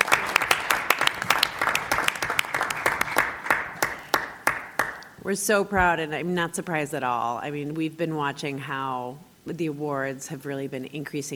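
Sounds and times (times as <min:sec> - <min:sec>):
audience applause: 0:00.0 - 0:05.1
speech: 0:05.3 - 0:11.3.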